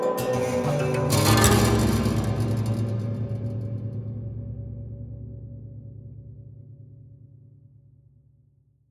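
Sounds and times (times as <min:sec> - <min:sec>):
haunted strings slow hard down stroke: 0:00.1 - 0:04.4.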